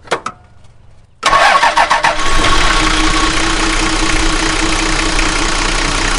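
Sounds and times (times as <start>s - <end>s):
old car engine starting and idling: 1.2s - 6.1s.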